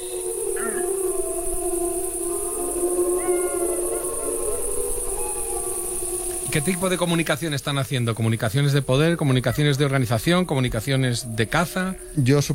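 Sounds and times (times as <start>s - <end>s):
pack of wolves howling in chorus: 0.0s - 12.5s
steady high hiss: 0.0s - 12.5s
young wolves yipping and crying: 3.0s - 5.6s
speech: 6.5s - 12.5s.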